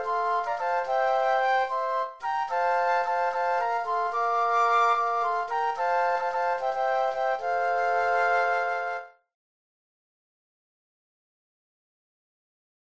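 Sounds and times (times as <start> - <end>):
flute trio playing: 0.0 - 9.2.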